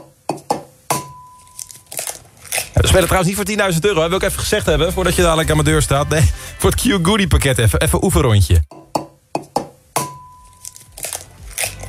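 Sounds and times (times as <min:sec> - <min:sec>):
egg being cracked open: 0:01.5 - 0:02.8, 0:10.5 - 0:11.8
speech: 0:02.8 - 0:08.8.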